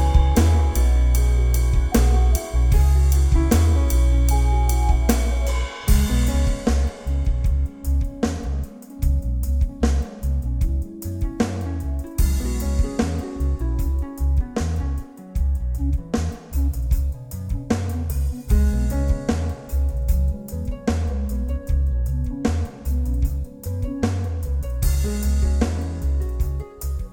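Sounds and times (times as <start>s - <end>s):
simple easy listening music: 0.0s - 27.1s.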